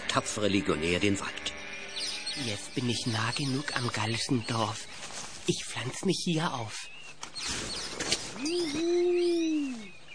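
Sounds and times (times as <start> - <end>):
speech: 0.2 - 1.6, 2.4 - 7.7, 8.4 - 9.3
owl hooting: 1.2 - 5.0, 7.4 - 10.1.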